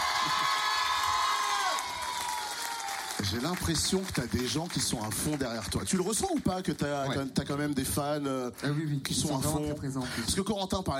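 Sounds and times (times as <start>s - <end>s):
studio audience cheering: 0.0s - 5.4s
speech: 0.2s - 0.6s, 3.2s - 10.9s.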